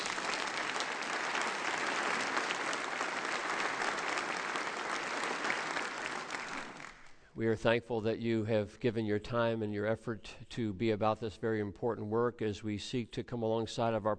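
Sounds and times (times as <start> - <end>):
audience applause: 0.0 - 7.2
speech: 7.4 - 14.1.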